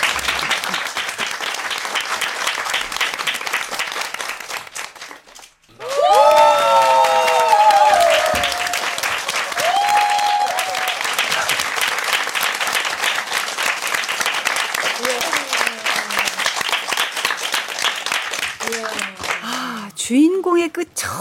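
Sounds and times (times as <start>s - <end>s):
audience applause: 0.0s - 19.9s.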